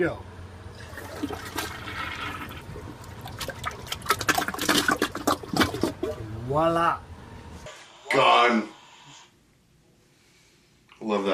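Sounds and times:
speech: 0:00.0 - 0:00.3, 0:06.5 - 0:07.1, 0:08.1 - 0:08.8, 0:11.0 - 0:11.3
1.28-gallon toilet flushing a bowl almost full of water balloons: 0:00.7 - 0:06.2
water gurgling and sputtering: 0:00.8 - 0:06.3.

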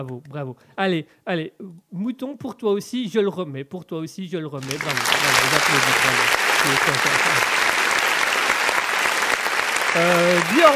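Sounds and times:
speech: 0:00.0 - 0:07.5, 0:10.0 - 0:10.7
applause: 0:04.6 - 0:10.7.

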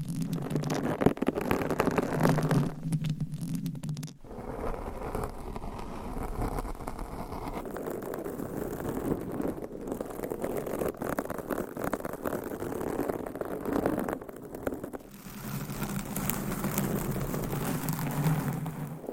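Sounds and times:
continuous scratching on a microphone: 0:00.0 - 0:19.1.

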